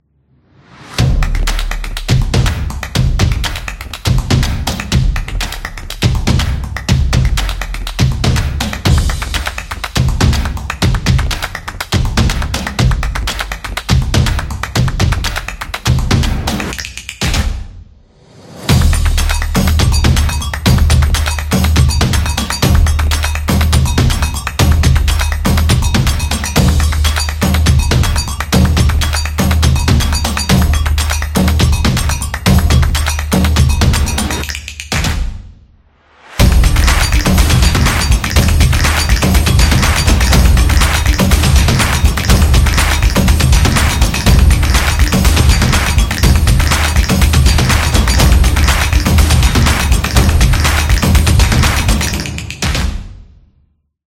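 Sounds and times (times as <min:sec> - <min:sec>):
percussion intro for a vlog opener: 0:00.3 - 0:53.6.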